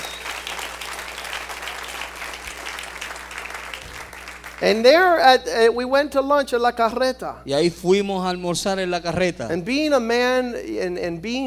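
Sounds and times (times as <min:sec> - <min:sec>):
large gathered crowd applause: 0:00.0 - 0:04.6
low hum: 0:00.0 - 0:11.4
speech: 0:04.6 - 0:11.4.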